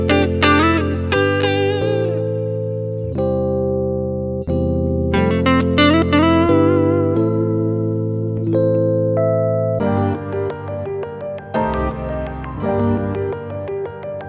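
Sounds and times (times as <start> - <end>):
guitar: 0.0 - 14.2
smooth keys: 6.5 - 14.2.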